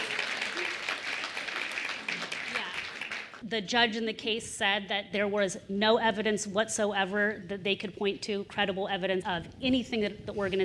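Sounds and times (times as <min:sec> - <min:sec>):
audience clapping: 0:00.0 - 0:03.4
speech: 0:03.5 - 0:10.6.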